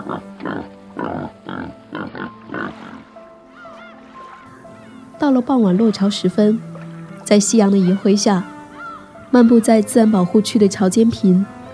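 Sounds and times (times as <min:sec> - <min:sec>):
wild boar piglets grunting on an island in Singapore: 0:00.0 - 0:03.0
speech: 0:05.3 - 0:06.7, 0:07.3 - 0:08.5, 0:09.3 - 0:11.6.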